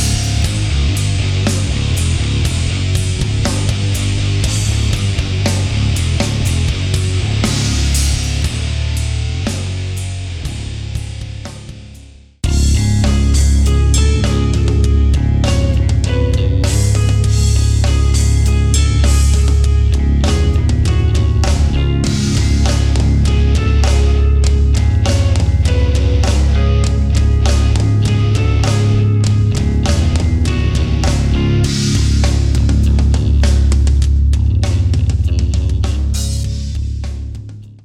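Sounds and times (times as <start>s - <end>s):
mega metal music: 0.0s - 37.8s.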